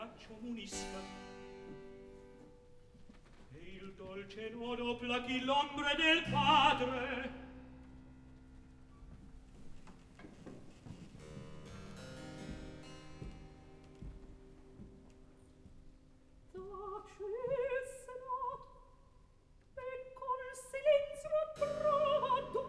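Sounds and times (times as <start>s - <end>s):
opera recitative: 0.0s - 1.8s, 3.5s - 7.6s, 16.5s - 19.0s, 19.7s - 22.6s.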